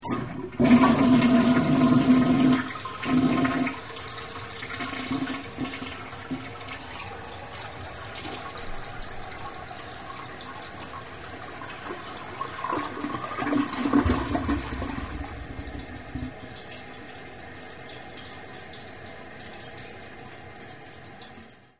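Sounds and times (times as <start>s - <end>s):
toilet flush: 0.0s - 21.7s.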